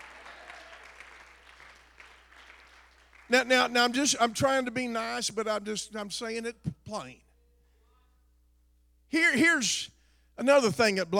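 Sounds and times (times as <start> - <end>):
audience clapping hands: 0.0 - 3.8
speech: 3.3 - 7.2, 9.1 - 11.1.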